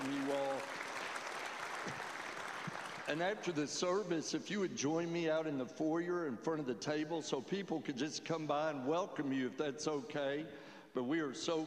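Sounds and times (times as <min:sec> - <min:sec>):
people saying amen: 0:00.0 - 0:00.8
audience applause: 0:00.0 - 0:03.3
speech: 0:03.1 - 0:11.6.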